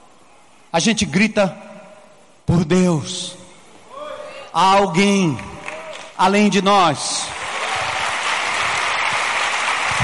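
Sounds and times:
speech: 0.7 - 1.7, 2.5 - 3.4, 4.5 - 5.5, 6.2 - 7.4
audience applause: 7.3 - 10.0.

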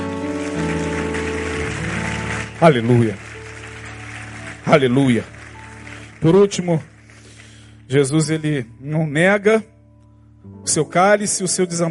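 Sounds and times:
audience applauding: 0.0 - 7.9
speech: 2.6 - 3.2, 4.7 - 5.4, 6.2 - 6.9, 7.9 - 9.7, 10.4 - 11.8.

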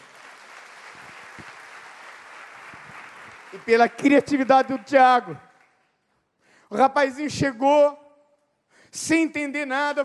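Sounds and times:
applause: 0.0 - 6.2
speech: 3.5 - 5.4, 6.7 - 8.0, 8.9 - 10.0.

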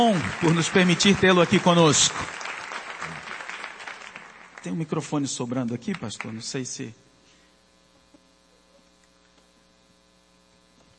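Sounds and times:
speech: 0.0 - 2.4, 4.6 - 7.0
audience applause: 0.0 - 6.5.

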